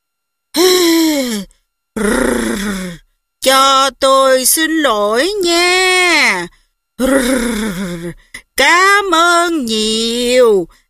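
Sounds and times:
voice imitating a woman moaning contentedly in her sleep: 0.6 - 3.0, 7.0 - 8.4
speech: 2.0 - 10.8.

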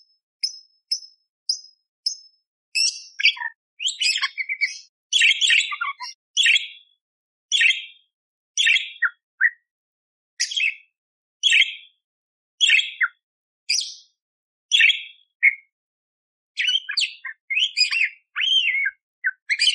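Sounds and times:
Eurasian tree sparrow fighting song chirps: 0.0 - 6.8, 7.5 - 8.0, 10.4 - 10.8, 11.4 - 11.9, 12.6 - 14.1, 14.7 - 15.7, 16.6 - 19.7.

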